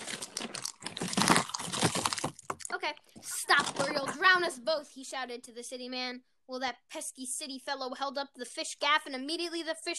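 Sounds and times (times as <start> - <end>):
crunching breakfast cereal being chewed: 0.0 - 2.7
speech: 3.4 - 9.9.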